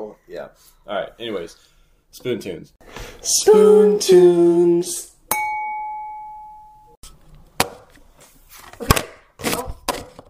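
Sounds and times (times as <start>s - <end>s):
speech: 0.1s - 5.1s
ringing tone: 5.3s - 7.0s.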